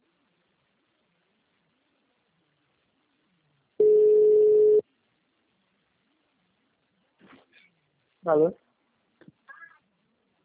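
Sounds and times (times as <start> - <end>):
telephone beep from a call failing to connect: 3.8 - 4.8
speech: 8.2 - 8.7.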